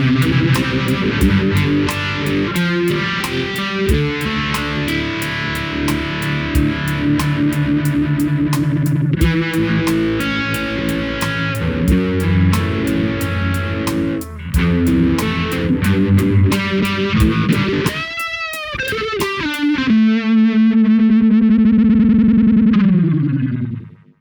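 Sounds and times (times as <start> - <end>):
dirty chorus guitar effect with rotovibe: 0.0 - 24.1.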